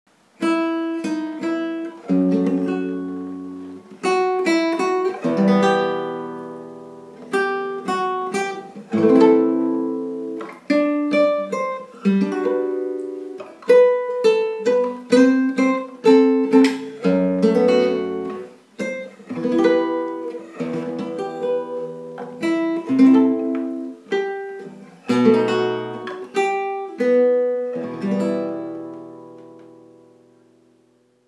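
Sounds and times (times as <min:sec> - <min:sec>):
guitar solo: 0:00.4 - 0:31.0.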